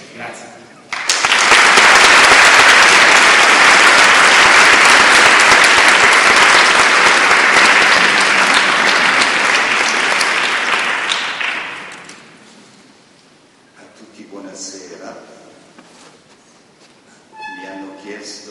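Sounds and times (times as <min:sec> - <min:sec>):
applause greeting the teacher: 0:00.9 - 0:12.4.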